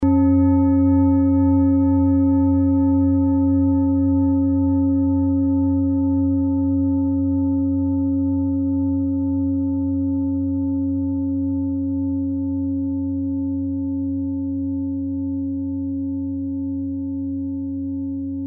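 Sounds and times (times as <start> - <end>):
set of singing bowls: 0.0 - 18.4.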